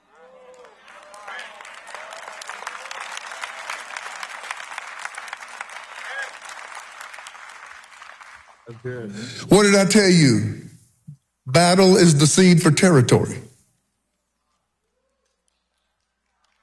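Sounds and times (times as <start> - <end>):
audience clapping: 0.0 - 9.8, 15.2 - 16.6
speech: 8.7 - 10.6, 11.6 - 13.4.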